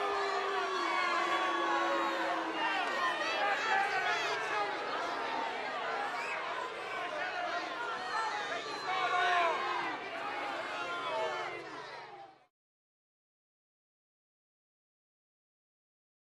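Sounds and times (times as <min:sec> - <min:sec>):
crowd of 100 booing and yelling: 0:00.0 - 0:12.5.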